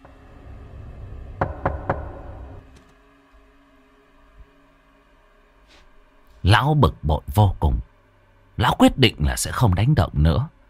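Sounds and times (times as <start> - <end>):
knocking on a door: 1.4 - 2.6
speech: 6.5 - 7.9, 8.6 - 10.6.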